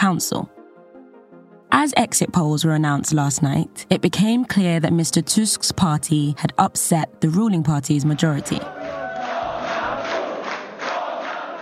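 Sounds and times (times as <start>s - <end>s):
speech: 0.1s - 0.6s, 1.7s - 9.0s
crowd of supporters chanting a name: 8.3s - 11.6s.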